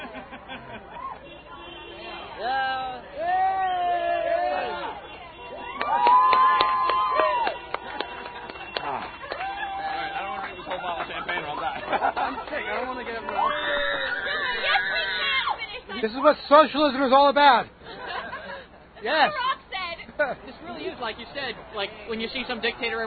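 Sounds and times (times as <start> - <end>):
laughter: 0.0 - 1.2, 7.8 - 15.4, 17.8 - 20.9
vehicle horns honking: 1.2 - 2.5, 4.6 - 5.9, 7.3 - 10.9
street celebration crowd cheering and yelling: 2.3 - 10.8, 12.7 - 15.7
scattered claps: 5.8 - 13.4
speech: 16.2 - 17.8, 19.0 - 19.4, 20.2 - 23.0.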